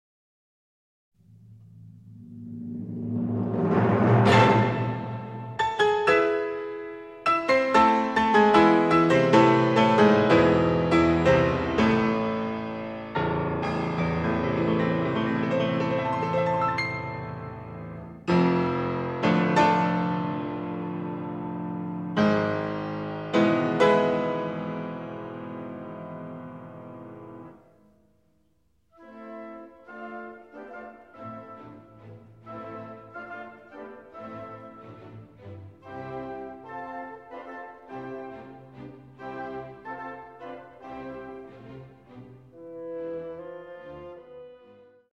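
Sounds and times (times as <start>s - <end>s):
piano concerto: 1.2s - 45.1s.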